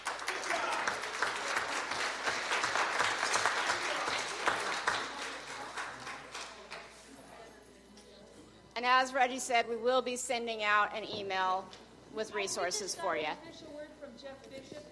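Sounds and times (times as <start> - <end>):
audience applause: 0.0 - 6.8
speech: 9.0 - 14.8.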